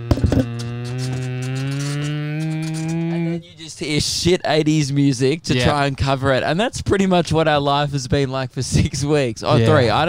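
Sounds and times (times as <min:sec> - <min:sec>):
voice imitating a car engine: 0:00.0 - 0:03.7, 0:09.5 - 0:10.0
speech: 0:03.8 - 0:10.0.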